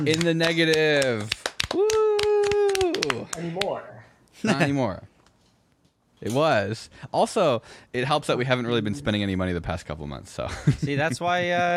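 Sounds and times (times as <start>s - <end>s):
speech: 0.0s - 2.0s, 3.0s - 5.1s, 6.2s - 11.7s
hand claps: 0.0s - 3.8s.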